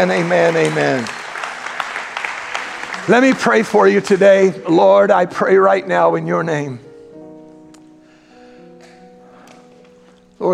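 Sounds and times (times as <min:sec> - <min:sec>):
speech: 0:00.0 - 0:01.2, 0:03.1 - 0:06.9
audience clapping hands: 0:00.0 - 0:04.8.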